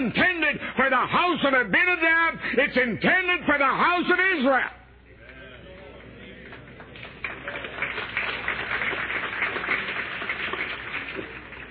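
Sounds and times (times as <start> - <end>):
speech: 0.0 - 4.8
audience applause: 6.5 - 11.7.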